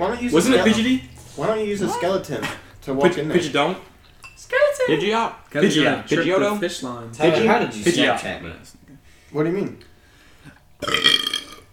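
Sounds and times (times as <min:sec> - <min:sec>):
speech: 0:00.0 - 0:09.9, 0:10.8 - 0:11.3
loud drawn-out burp: 0:10.8 - 0:11.7.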